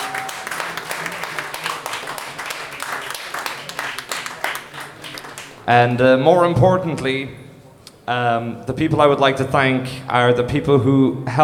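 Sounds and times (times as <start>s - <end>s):
audience applause: 0.0s - 5.7s
speech: 5.6s - 7.4s, 8.1s - 11.4s.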